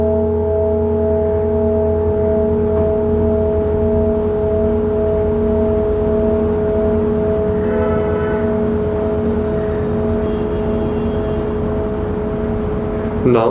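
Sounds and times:
singing bowls droning: 0.0s - 13.4s
bright shimmer: 7.4s - 11.2s.

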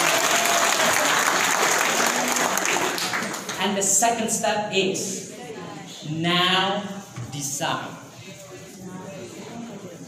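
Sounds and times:
audience clapping hands: 0.0s - 3.6s
speech: 3.6s - 5.2s, 6.1s - 8.0s.

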